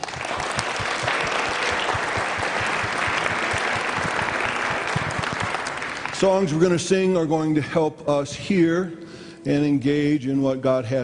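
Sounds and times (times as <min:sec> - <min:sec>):
church congregation applause welcoming a pastor at Northeast Community Church: 0:00.0 - 0:07.2
speech: 0:06.2 - 0:11.0.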